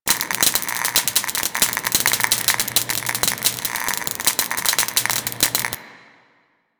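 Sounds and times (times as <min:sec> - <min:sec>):
sparks: 0:00.0 - 0:06.2.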